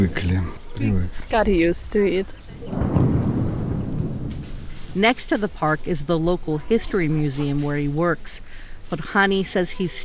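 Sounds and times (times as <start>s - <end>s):
speech: 0.0s - 2.4s, 5.0s - 10.0s
distant explosions rumbling: 1.4s - 5.2s.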